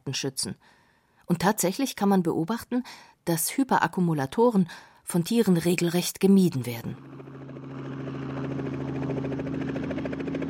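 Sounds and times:
speech: 0:00.1 - 0:07.1
helicopter flying in a rapid climb: 0:06.5 - 0:10.4.

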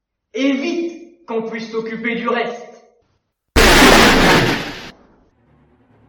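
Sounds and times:
speech: 0:00.4 - 0:02.7
clattering debris: 0:03.6 - 0:04.9
hammer smashing a computer: 0:03.6 - 0:04.9.

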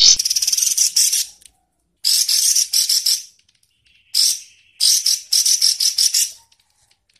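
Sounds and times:
songbird song in harsh buzzy bursts and rattling trill: 0:00.2 - 0:01.4, 0:02.1 - 0:06.4.

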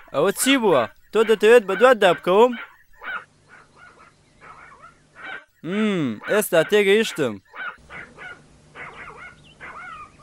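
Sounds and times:
speech: 0:00.1 - 0:02.7, 0:05.6 - 0:07.5
dog barking: 0:02.5 - 0:05.5, 0:07.6 - 0:10.0.

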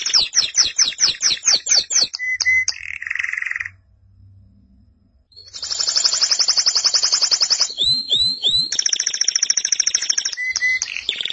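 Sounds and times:
canary song: 0:00.0 - 0:03.8, 0:05.4 - 0:11.3.

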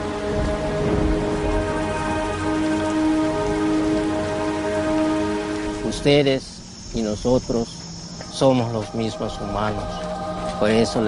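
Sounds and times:
raindrops pattering on a surface: 0:00.0 - 0:06.1
steady rain: 0:00.0 - 0:11.0
speech: 0:06.0 - 0:07.8, 0:08.4 - 0:11.0.

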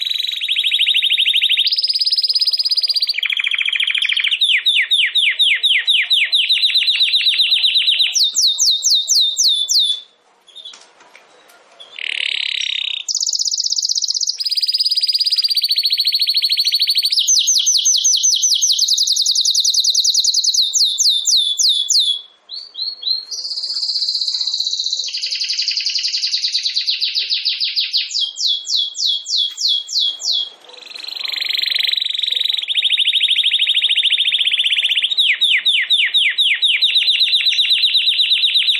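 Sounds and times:
domestic canary song: 0:00.0 - 0:38.7.

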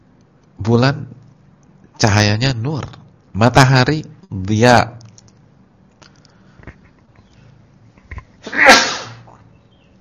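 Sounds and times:
speech: 0:00.6 - 0:01.2, 0:02.0 - 0:05.0
person sneezing: 0:08.4 - 0:09.3.

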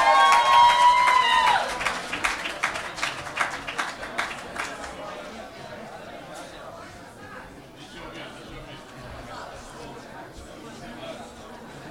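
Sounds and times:
audience applause at an alternative song festival: 0:00.0 - 0:05.4.

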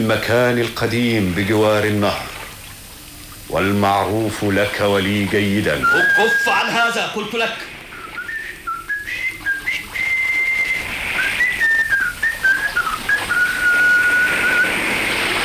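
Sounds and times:
speech: 0:00.0 - 0:02.4, 0:03.5 - 0:07.8
person whistling a marching tune as agreed signal: 0:05.8 - 0:06.8, 0:07.9 - 0:14.8.

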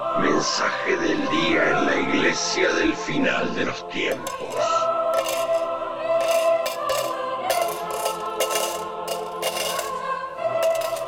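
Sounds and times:
speech: 0:00.2 - 0:05.4
coins dropping and clinking as a church offering: 0:04.1 - 0:10.1, 0:10.6 - 0:11.0.

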